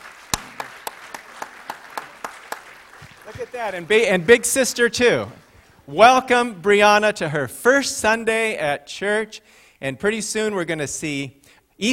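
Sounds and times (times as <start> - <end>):
audience clapping: 0.0 - 5.8
soft hiss: 0.0 - 11.9
speech: 3.3 - 11.9.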